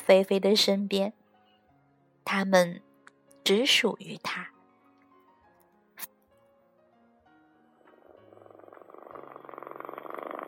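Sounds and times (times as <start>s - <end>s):
speech: 0.1s - 1.2s, 2.3s - 2.9s, 3.5s - 4.5s
cat purring while asleep: 7.8s - 10.4s.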